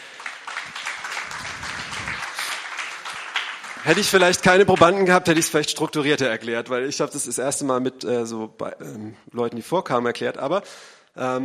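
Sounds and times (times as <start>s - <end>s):
applause: 0.0s - 5.6s
speech: 3.8s - 11.4s.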